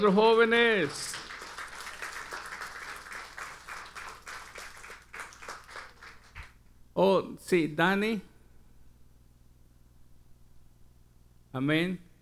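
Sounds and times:
speech: 0.0s - 1.2s, 7.0s - 8.3s, 11.6s - 12.0s
crowd applauding: 0.0s - 6.6s.

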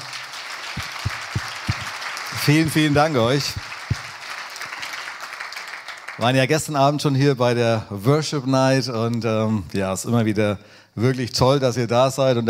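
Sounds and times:
audience applause: 0.0s - 6.4s
speech: 2.4s - 3.6s, 6.2s - 12.4s.

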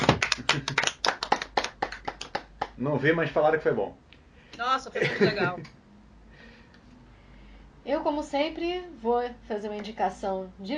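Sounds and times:
short round of applause: 0.0s - 2.8s
speech: 2.8s - 4.0s, 4.6s - 5.8s, 7.8s - 10.7s
laughter: 5.0s - 5.7s.

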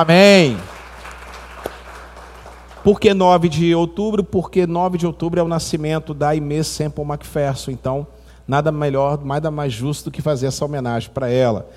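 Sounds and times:
speech: 0.0s - 0.7s, 2.8s - 11.7s
audience applause: 0.4s - 3.2s.

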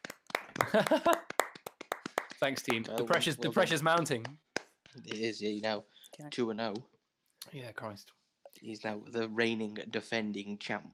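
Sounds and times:
group hand clapping: 0.0s - 5.3s
speech: 0.7s - 1.4s, 2.4s - 4.4s, 5.0s - 10.9s.

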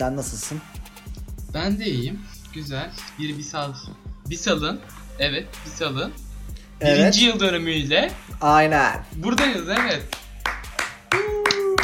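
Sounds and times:
speech: 0.0s - 0.8s, 1.5s - 6.2s, 6.8s - 10.2s
sharp hand claps: 9.3s - 11.8s.

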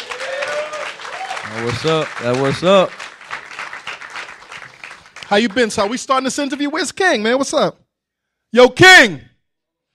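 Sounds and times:
audience applause: 0.0s - 6.6s
speech: 1.5s - 3.0s, 5.3s - 7.8s, 8.5s - 9.3s.

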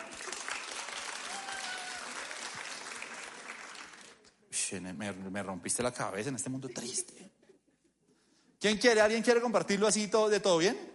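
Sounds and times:
audience applause: 0.0s - 4.3s
speech: 4.7s - 7.4s, 8.6s - 10.9s.

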